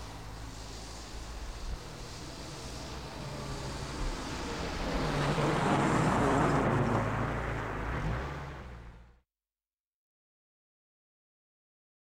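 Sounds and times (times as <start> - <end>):
traffic in the snow: 0.0 - 9.2.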